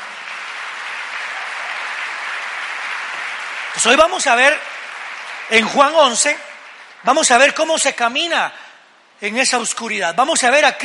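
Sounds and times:
loud applause: 0.0 - 7.6
speech: 3.8 - 4.7, 5.5 - 8.6, 9.2 - 10.8.

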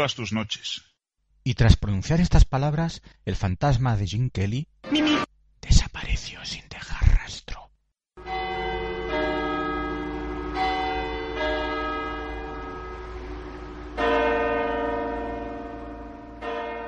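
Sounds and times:
speech: 0.0 - 5.2
wall clock chiming and striking: 8.2 - 16.8.

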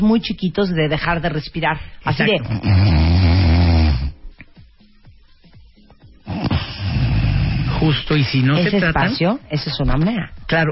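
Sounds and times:
speech: 0.1 - 3.4, 7.8 - 10.6
person imitating snoring: 2.2 - 4.2, 6.2 - 8.7.

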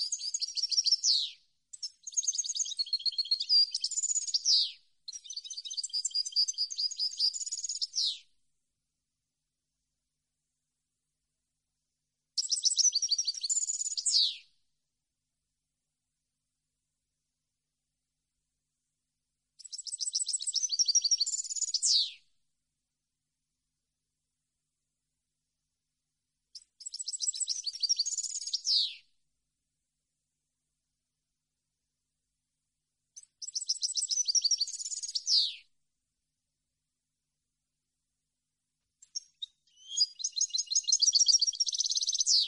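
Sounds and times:
European goldfinch song: 0.0 - 8.4, 12.4 - 14.6, 19.6 - 22.3, 26.5 - 29.2, 33.2 - 35.7, 39.0 - 42.4.

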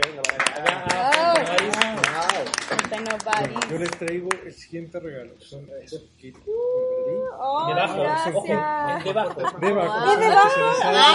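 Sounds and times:
audience clapping: 0.0 - 4.5
speech: 3.2 - 11.1
laughter: 8.7 - 11.1.

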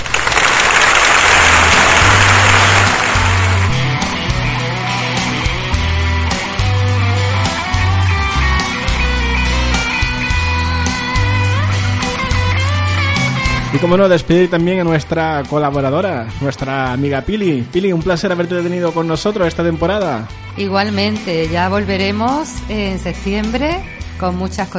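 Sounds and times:
crowd clapping: 0.0 - 6.6
music with pulsing bass line and bright melodic notes: 0.4 - 24.7
speech: 13.8 - 24.7.

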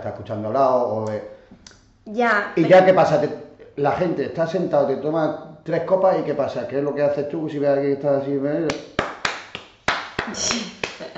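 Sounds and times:
speech: 0.0 - 9.0, 10.3 - 11.1
rhythmic hand clapping in the palmas style: 8.6 - 11.1
person murmuring softly: 10.3 - 11.1.

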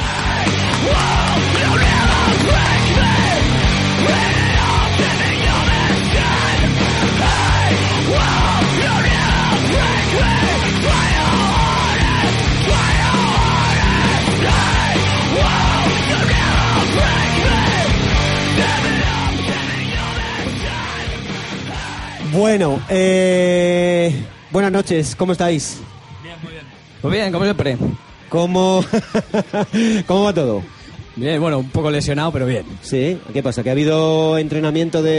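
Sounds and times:
audience applauding: 0.0 - 3.7
audience cheering: 0.0 - 24.4
speech: 22.4 - 26.0, 27.0 - 35.1
laughter: 28.7 - 30.2.

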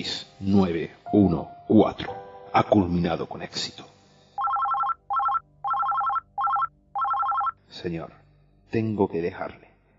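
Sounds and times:
speech: 0.0 - 3.9, 7.8 - 9.7
phone ringtone in a Spanish radio drama: 4.4 - 7.6.

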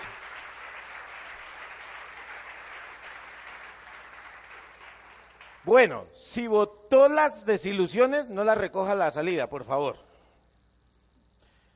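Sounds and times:
applause: 0.0 - 6.0
speech: 5.6 - 10.1.

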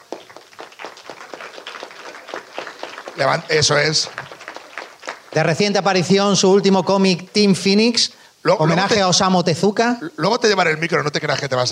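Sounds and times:
audience clapping: 0.0 - 7.5
speech: 3.2 - 4.3, 5.3 - 11.7.

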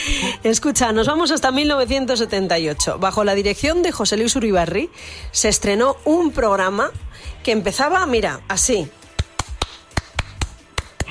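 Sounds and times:
speech: 0.1 - 9.0
person clapping hands: 9.0 - 11.1.

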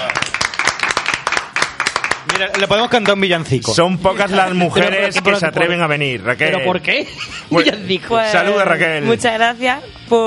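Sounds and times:
applause for a guest: 0.0 - 3.3
speech: 2.4 - 10.2
laughter: 6.9 - 7.9.

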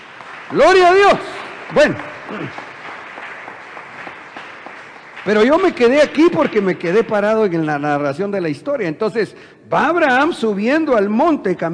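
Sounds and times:
audience clapping: 0.0 - 7.7
speech: 0.5 - 2.6, 5.2 - 11.7.

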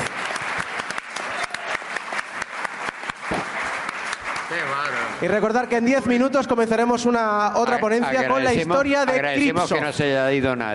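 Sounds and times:
audience applause: 0.0 - 5.9
speech: 5.2 - 10.7.

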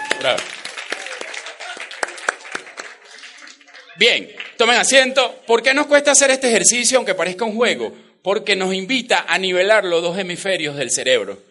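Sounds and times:
room full of people applauding: 0.0 - 5.5
speech: 0.2 - 0.6, 4.0 - 11.5.

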